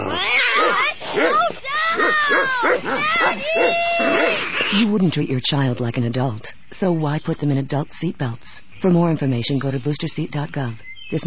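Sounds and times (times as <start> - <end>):
Great Dane barking and whimpering: 0.0 - 4.8
speech: 2.5 - 11.2.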